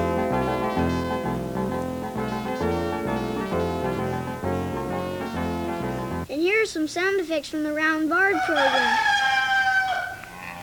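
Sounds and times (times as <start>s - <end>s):
silly radio theme song played from a tape: 0.0s - 6.3s
speech: 6.8s - 9.1s.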